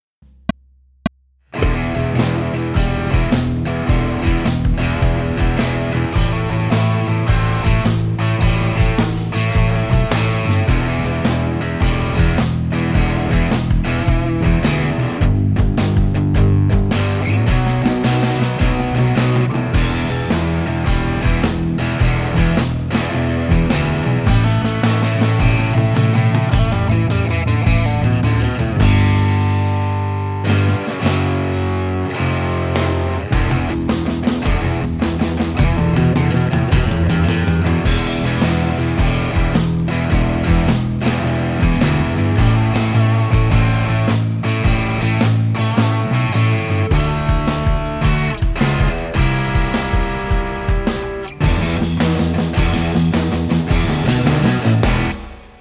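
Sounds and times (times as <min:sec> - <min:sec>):
drums: 0:00.2 - 0:31.8, 0:32.8 - 0:55.5.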